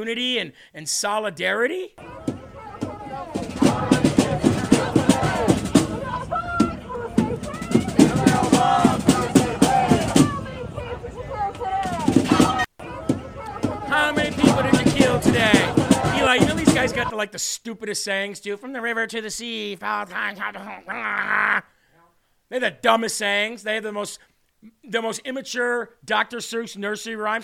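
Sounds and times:
speech: 0:00.0 - 0:02.3, 0:16.3 - 0:21.7, 0:22.5 - 0:27.4
crowd of protesters chanting in unison: 0:02.0 - 0:17.1
rapid percussive bangs: 0:02.1 - 0:10.4, 0:11.8 - 0:17.1
laughter: 0:02.2 - 0:06.1, 0:19.9 - 0:21.7.

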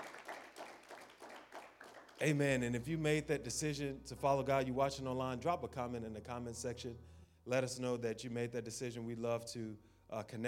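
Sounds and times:
audience clapping hands in praise: 0:00.0 - 0:02.6
speech: 0:02.2 - 0:10.4.

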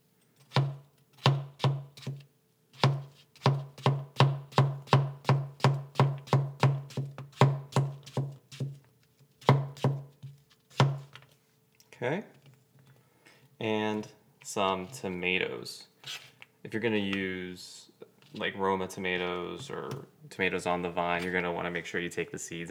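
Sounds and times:
knife dicing cucumber on a cutting board: 0:00.5 - 0:02.2, 0:02.8 - 0:08.8, 0:09.4 - 0:11.2
speech: 0:12.0 - 0:12.4, 0:13.6 - 0:22.6.

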